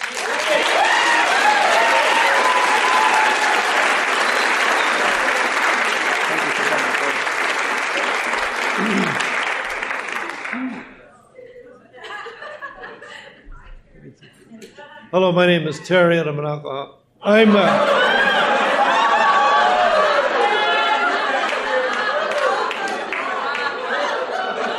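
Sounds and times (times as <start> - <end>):
large group applauding a speaker at an evening meeting: 0.0 - 11.1, 17.6 - 24.7
laughter: 4.3 - 14.7, 17.3 - 24.7
speech: 15.2 - 18.1.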